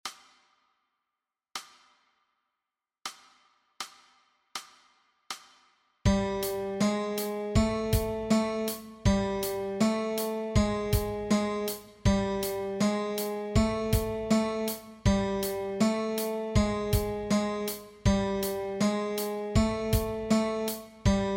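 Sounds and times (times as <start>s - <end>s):
guitar exercise: 6.1s - 21.3s.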